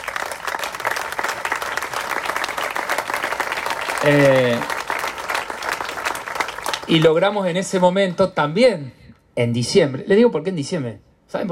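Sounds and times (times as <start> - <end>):
audience applause: 0.0 - 7.9
speech: 4.0 - 4.7, 6.9 - 11.5.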